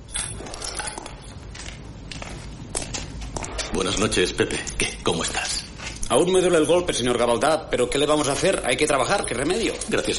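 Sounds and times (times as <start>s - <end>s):
footsteps of a man walking through a factory at night: 1.0s - 4.1s
speech: 3.7s - 10.1s.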